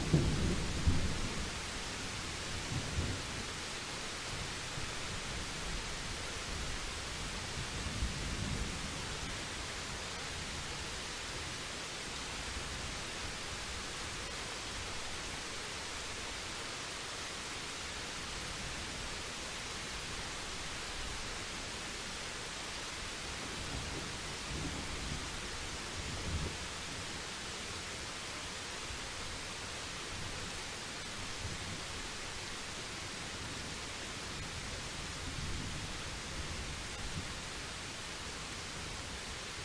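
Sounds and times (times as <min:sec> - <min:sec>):
rain in a thunderstorm: 0:00.0 - 0:39.6.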